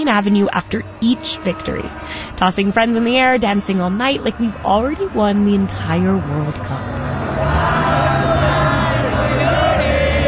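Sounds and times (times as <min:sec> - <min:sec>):
speech: 0:00.0 - 0:07.0
crowd singing a mariachi folk song: 0:07.0 - 0:10.2.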